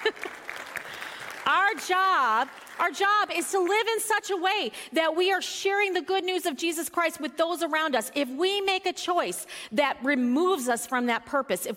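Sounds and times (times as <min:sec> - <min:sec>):
audience clapping: 0:00.0 - 0:04.0
speech: 0:01.7 - 0:11.7.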